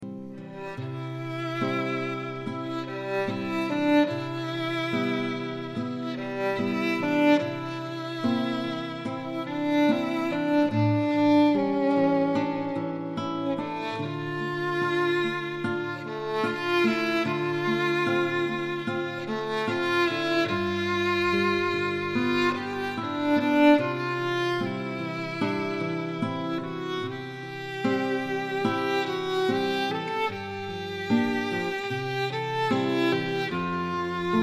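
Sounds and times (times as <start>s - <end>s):
violin playing a song: 0.3s - 34.4s.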